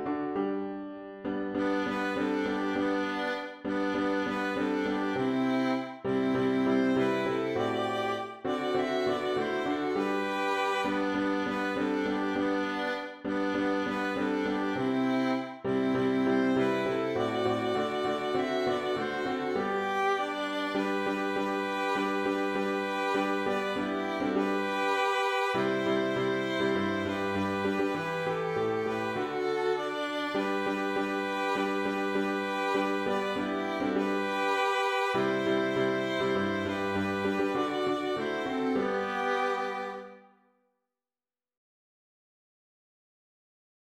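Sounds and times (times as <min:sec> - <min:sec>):
violin duet: 0:00.1 - 0:40.3.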